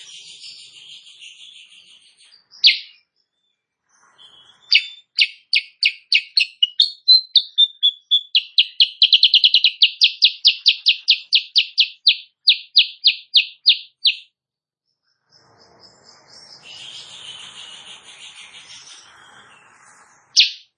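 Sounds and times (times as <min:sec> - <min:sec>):
sooty-headed bulbul song: 0:04.7 - 0:14.2, 0:20.4 - 0:20.6.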